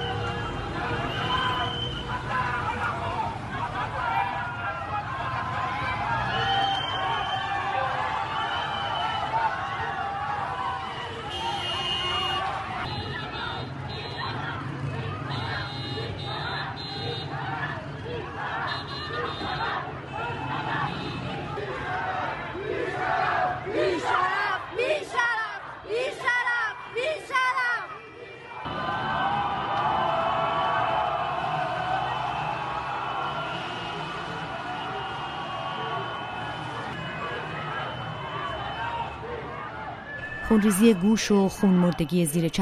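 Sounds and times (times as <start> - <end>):
protest crowd chanting: 0.0 - 41.7
car horns: 11.0 - 17.4, 18.5 - 21.5, 33.2 - 38.8
speech: 40.5 - 42.6.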